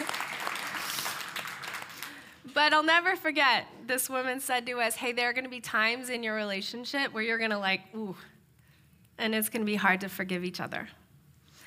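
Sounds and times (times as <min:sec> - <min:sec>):
audience applause: 0:00.0 - 0:02.4
speech: 0:02.6 - 0:08.3, 0:09.2 - 0:11.0.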